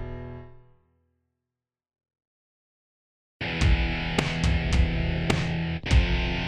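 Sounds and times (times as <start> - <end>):
MIDI music: 3.4 - 6.4.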